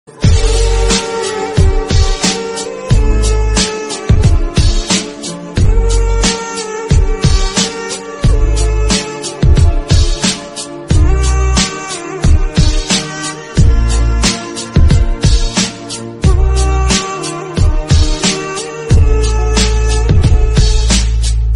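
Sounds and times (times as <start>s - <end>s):
instrumental background music: 0.1s - 21.5s.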